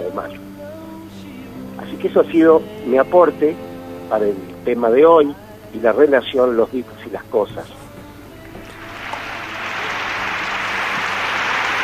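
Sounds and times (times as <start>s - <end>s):
speech: 2.0s - 7.8s
applause: 8.8s - 11.8s.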